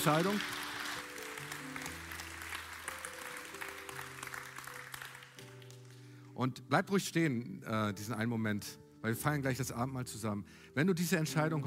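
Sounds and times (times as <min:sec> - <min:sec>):
speech: 0:00.0 - 0:00.6, 0:06.4 - 0:11.6
steady applause from a crowd: 0:00.0 - 0:06.0.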